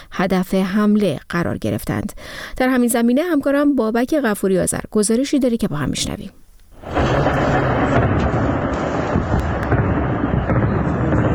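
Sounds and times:
speech: 0:00.2 - 0:07.6
anti-aircraft fire: 0:06.8 - 0:11.3.

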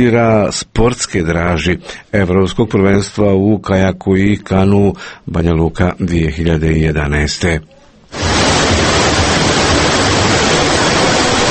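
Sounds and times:
speech: 0:00.0 - 0:08.9
Vrbas river rushing in the Tjesno canyon near Banja Luka: 0:08.2 - 0:11.4.

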